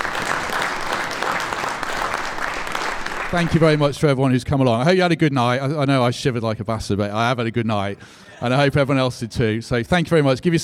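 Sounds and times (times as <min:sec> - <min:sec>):
audience clapping: 0:00.0 - 0:04.0
speech: 0:03.3 - 0:10.6.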